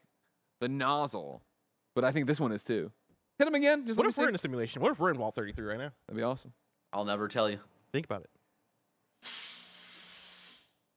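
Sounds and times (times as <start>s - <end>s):
speech: 0.6s - 8.4s, 9.2s - 9.4s
fog machine hissing: 9.2s - 10.8s.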